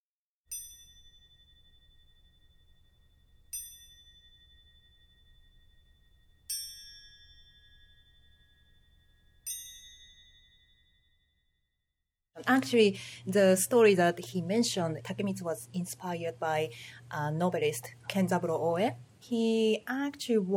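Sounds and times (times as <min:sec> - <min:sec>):
strikes on small antique cymbals: 0:00.5 - 0:11.3
speech: 0:12.4 - 0:20.5.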